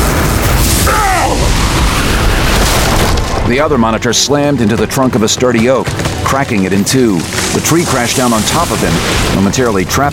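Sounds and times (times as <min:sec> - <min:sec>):
explosive energy blast: 0:00.0 - 0:03.7, 0:07.2 - 0:09.9
speech: 0:03.5 - 0:10.1.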